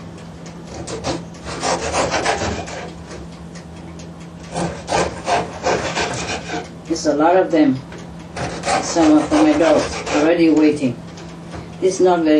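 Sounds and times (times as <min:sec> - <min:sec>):
cutting bread in half: 0:00.7 - 0:03.2, 0:04.5 - 0:06.7, 0:08.4 - 0:10.5
speech: 0:07.0 - 0:07.9, 0:08.9 - 0:11.0, 0:11.8 - 0:12.3.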